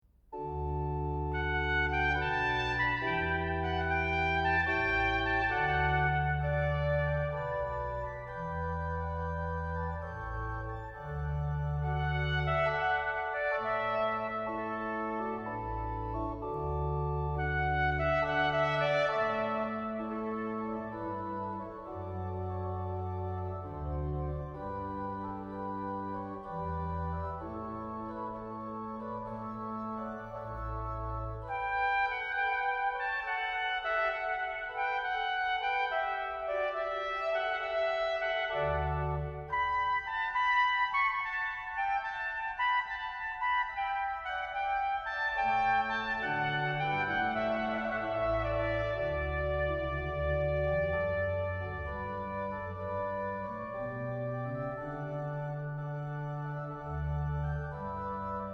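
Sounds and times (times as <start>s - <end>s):
organ: 0.3s - 58.5s
trumpet: 0.4s - 58.5s.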